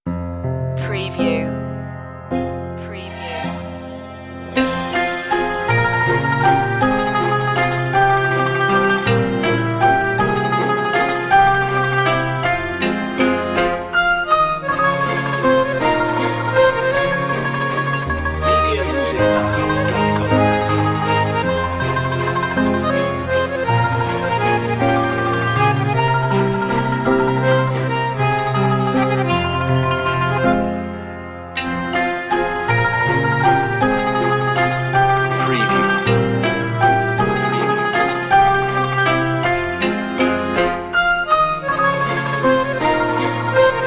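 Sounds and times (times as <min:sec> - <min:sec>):
world waltz music without rhythm: 0:00.2 - 0:43.8.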